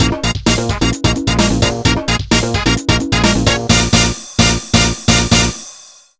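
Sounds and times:
dance battle background music: 0:00.0 - 0:05.6.

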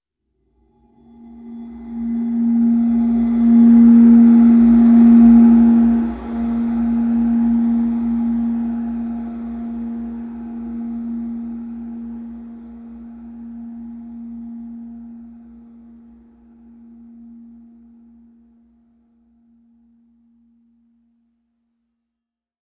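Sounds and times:
drone: 0:00.7 - 0:18.5.

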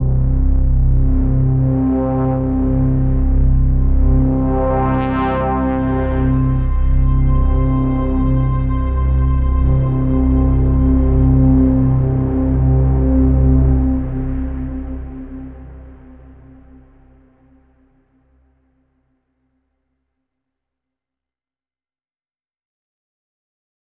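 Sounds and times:
overlay drone: 0:00.0 - 0:18.5.

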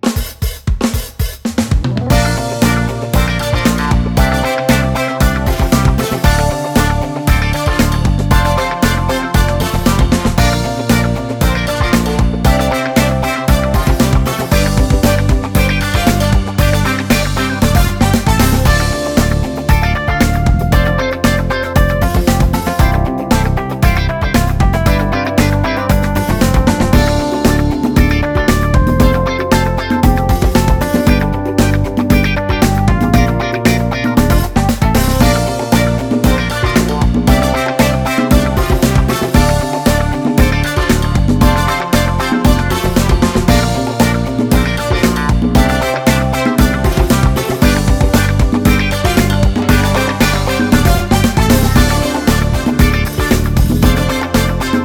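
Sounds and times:
summer funk music: 0:00.0 - 0:54.8.

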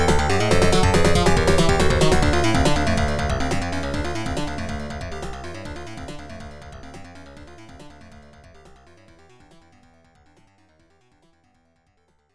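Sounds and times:
tension music: 0:00.0 - 0:08.3.

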